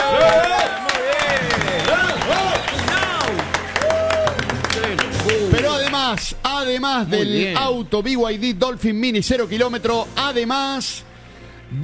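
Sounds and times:
applause: 0.0 - 6.3
speech: 6.1 - 11.1.

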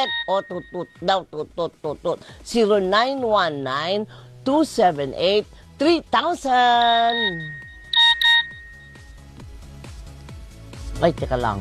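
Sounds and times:
old phone ringtone: 0.0 - 1.0, 6.8 - 9.2
speech: 0.0 - 7.6, 11.0 - 11.5.

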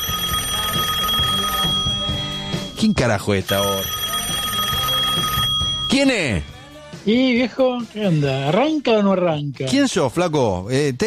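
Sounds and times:
telephone ringing: 0.0 - 6.6
speech: 2.8 - 4.0, 5.9 - 11.0.

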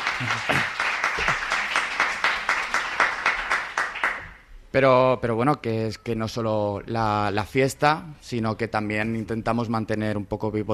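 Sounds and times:
audience applause: 0.0 - 4.4
speech: 0.2 - 0.7, 4.7 - 10.7.

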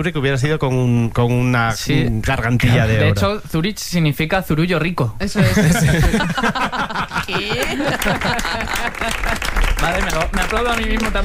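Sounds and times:
speech: 0.0 - 11.2
laughter: 5.4 - 9.6
applause: 7.3 - 11.2.

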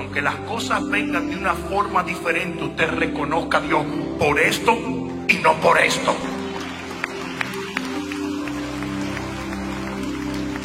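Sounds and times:
speech: 0.0 - 6.4
audience applause: 5.9 - 10.6.

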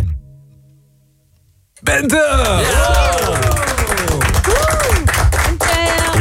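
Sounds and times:
speech: 1.8 - 3.4
crowd applauding: 1.9 - 6.1
audience cheers and whoops: 2.4 - 5.2.

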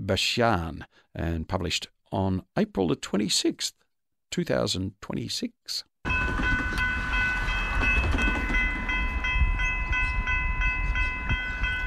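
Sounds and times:
speech: 0.1 - 6.5
sustained high metallic ringing tone: 6.0 - 11.8
train rolling along the rails: 6.1 - 11.8.

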